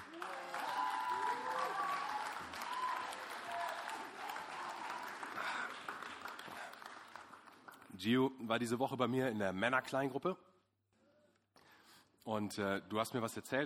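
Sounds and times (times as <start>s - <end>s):
faint voices and cheers: 0.0s - 5.1s
audience applause: 0.0s - 7.9s
speech: 8.0s - 10.5s, 12.2s - 13.6s.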